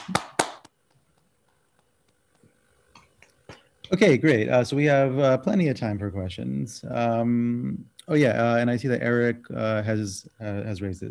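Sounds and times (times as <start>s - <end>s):
sharp loud hand claps: 0.0s - 0.8s
faint scattered clicks and soft claps over a call: 0.0s - 1.2s
speech: 3.9s - 11.0s.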